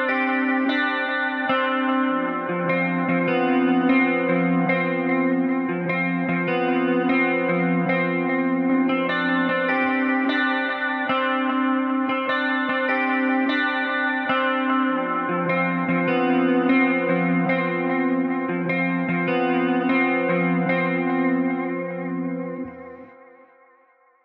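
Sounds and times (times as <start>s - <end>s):
top guitar loop in C major: 0.0s - 23.7s.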